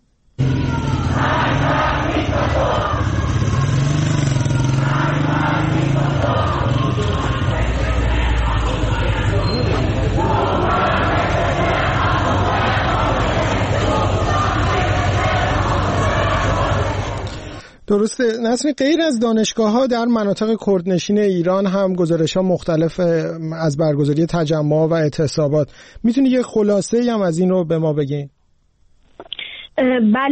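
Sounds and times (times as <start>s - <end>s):
protesting students chanting slogans: 0.4s - 17.6s
speech: 17.9s - 28.4s, 29.2s - 30.2s.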